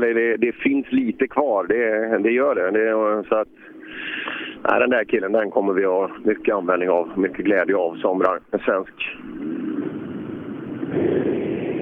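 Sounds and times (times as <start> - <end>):
speech: 0.0 - 9.7
rally car engine roar driving past at a rally event: 5.4 - 11.8.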